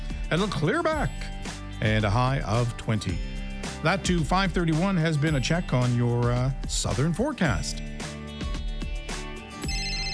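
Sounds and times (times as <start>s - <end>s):
speech: 0.3s - 7.9s
telephone ringtone from an incoming call: 9.5s - 10.1s.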